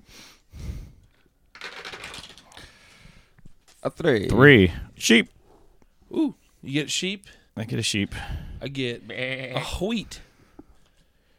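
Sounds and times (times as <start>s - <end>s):
dice rattling: 1.5s - 2.7s
speech: 3.8s - 5.4s, 6.1s - 10.3s.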